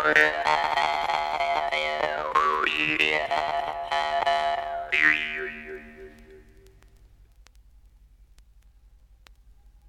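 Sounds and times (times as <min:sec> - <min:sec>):
Evenki Eveny Negidaltsy Jew's harp: 0:00.0 - 0:06.8.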